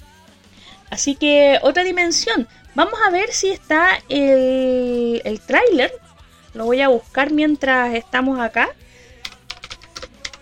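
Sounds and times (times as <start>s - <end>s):
speech: 0.9s - 6.0s, 6.6s - 8.8s
typing on a computer keyboard: 9.2s - 10.4s.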